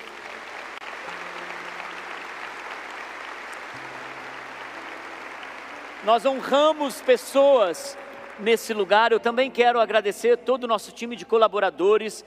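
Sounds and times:
audience applause: 0:00.0 - 0:09.2
speech: 0:06.0 - 0:12.2.

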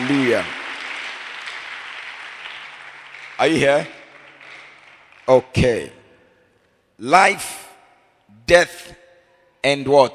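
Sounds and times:
audience hand clapping: 0:00.0 - 0:05.9
speech: 0:00.1 - 0:00.6, 0:03.4 - 0:04.0, 0:05.3 - 0:06.0, 0:07.0 - 0:07.6, 0:08.4 - 0:09.0, 0:09.6 - 0:10.1.

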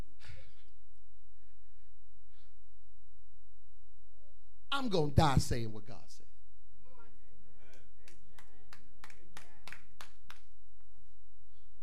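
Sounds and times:
speech: 0:04.8 - 0:06.2
few people clapping: 0:07.6 - 0:10.6.

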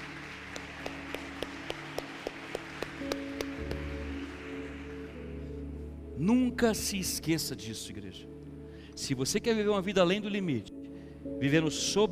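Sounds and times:
audience clapping in unison: 0:00.0 - 0:05.4
sustained keyboard chords: 0:00.0 - 0:12.1
speech: 0:06.2 - 0:10.7, 0:11.4 - 0:12.1.

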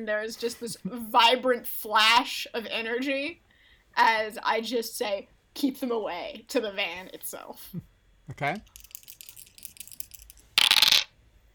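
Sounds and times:
speech: 0:00.0 - 0:08.8
dice rolling: 0:08.6 - 0:11.1.

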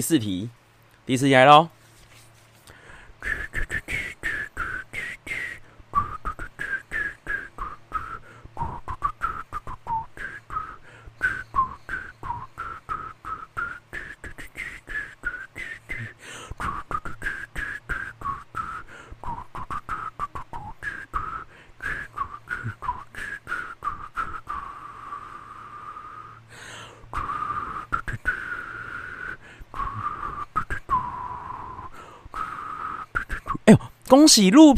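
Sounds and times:
speech: 0:00.0 - 0:01.8, 0:34.2 - 0:34.7
person whistling a song melody: 0:03.2 - 0:33.9.

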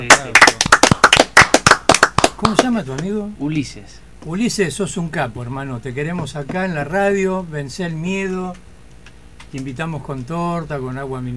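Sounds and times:
speech: 0:00.0 - 0:00.5, 0:02.4 - 0:08.7, 0:09.5 - 0:11.3
hand clapping: 0:00.0 - 0:03.1.

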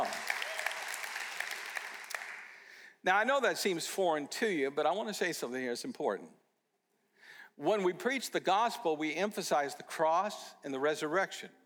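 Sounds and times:
audience clapping: 0:00.0 - 0:02.6
speech: 0:03.0 - 0:06.4, 0:07.6 - 0:11.6.

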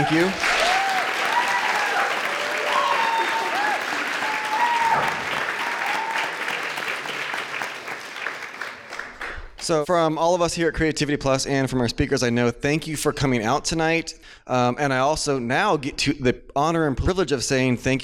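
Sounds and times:
speech: 0:00.0 - 0:00.5, 0:09.7 - 0:18.0
audience applause: 0:00.0 - 0:09.6.

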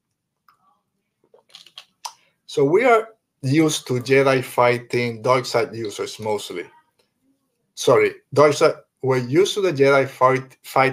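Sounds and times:
person sipping water: 0:01.2 - 0:02.2
speech: 0:02.5 - 0:06.8, 0:07.8 - 0:10.9.

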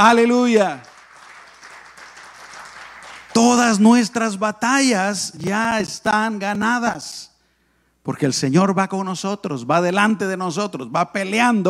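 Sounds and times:
speech: 0:00.0 - 0:00.9, 0:03.4 - 0:07.3, 0:08.0 - 0:11.6
audience applause: 0:00.8 - 0:03.4.

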